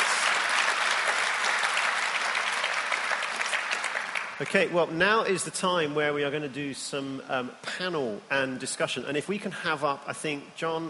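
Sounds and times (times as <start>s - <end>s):
audience applause: 0.0s - 4.7s
speech: 4.4s - 10.8s.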